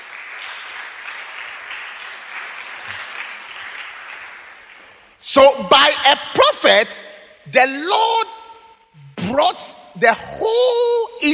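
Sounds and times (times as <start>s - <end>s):
congregation clapping hands in praise during worship: 0.0s - 5.7s
speech: 5.2s - 8.3s, 9.4s - 11.3s.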